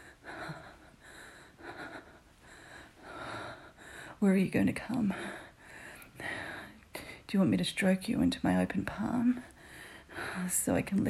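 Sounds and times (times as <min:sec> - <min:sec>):
rapid breathing: 0:00.0 - 0:07.3, 0:09.4 - 0:10.6
speech: 0:04.2 - 0:05.4, 0:07.3 - 0:09.5, 0:10.4 - 0:11.0.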